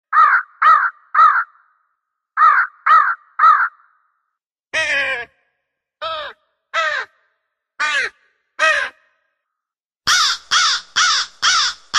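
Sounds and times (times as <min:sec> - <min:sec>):
crow calling with harsh raspy caws: 0:00.1 - 0:04.2, 0:06.0 - 0:09.3, 0:10.1 - 0:11.9.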